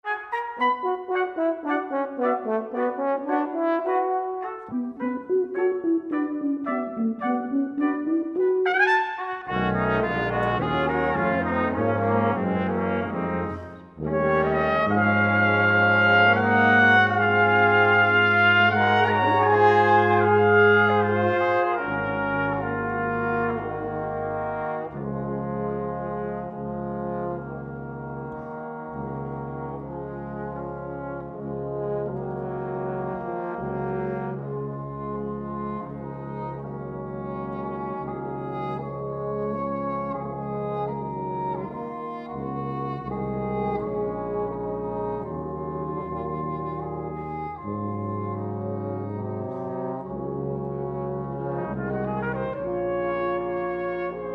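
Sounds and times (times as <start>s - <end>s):
Christmas brass music: 0.0s - 54.3s.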